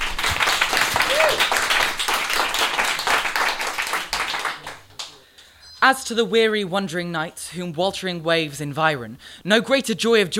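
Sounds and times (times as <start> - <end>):
audience applause: 0.0 - 5.2
speech: 5.8 - 10.3.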